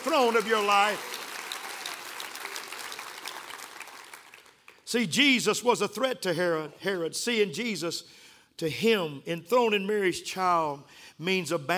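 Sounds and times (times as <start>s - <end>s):
speech: 0.0s - 1.2s, 4.9s - 11.7s
audience clapping hands: 0.0s - 4.9s.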